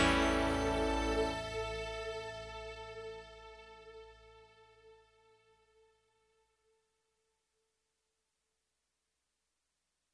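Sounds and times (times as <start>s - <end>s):
music interlude: 0.0s - 4.6s.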